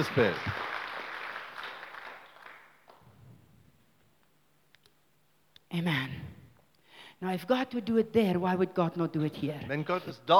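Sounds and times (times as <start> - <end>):
speech: 0.0 - 0.6, 5.7 - 6.3, 7.2 - 10.3
crowd applause: 0.0 - 3.0.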